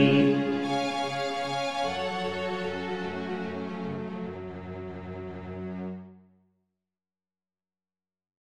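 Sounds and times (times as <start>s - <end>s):
bass: 0.0s - 5.7s.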